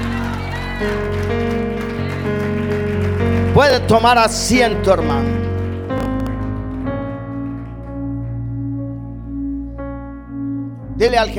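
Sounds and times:
audience applauding loudly: 0.0 - 9.0
sustained organ-like keyboard chords: 0.0 - 11.3
speech: 0.8 - 1.4, 3.6 - 5.4, 11.0 - 11.3.

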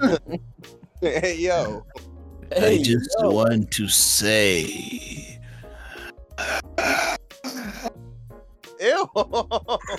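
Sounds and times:
laughter: 0.0 - 0.4, 1.0 - 1.8, 9.0 - 9.9
speech: 0.0 - 5.1, 9.1 - 9.9
heavy breathing into a microphone: 5.3 - 6.8.

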